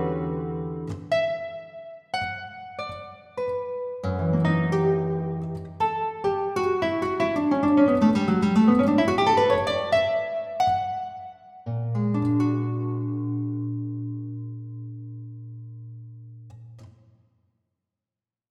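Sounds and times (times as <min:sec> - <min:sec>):
guitar piece: 0:00.0 - 0:17.2.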